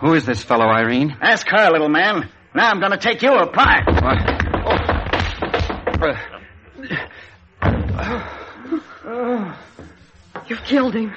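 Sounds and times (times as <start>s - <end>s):
speech: 0.0s - 4.8s, 6.0s - 8.4s, 10.5s - 11.1s
head smashed with an ashstand: 3.7s - 6.1s, 7.6s - 8.1s.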